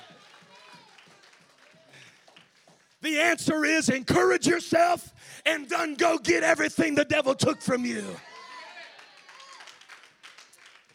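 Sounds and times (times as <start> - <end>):
hand claps: 0.0 - 3.0, 9.2 - 10.9
speech: 3.0 - 8.3.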